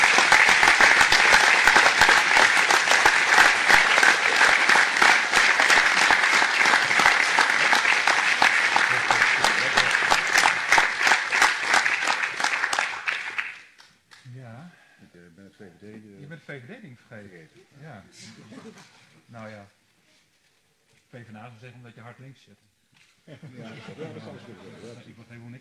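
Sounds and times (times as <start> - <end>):
audience applause at an award ceremony for the Order of Orange-Nassau: 0.0 - 13.9
laughter: 8.6 - 10.9, 18.2 - 19.3, 23.3 - 25.3.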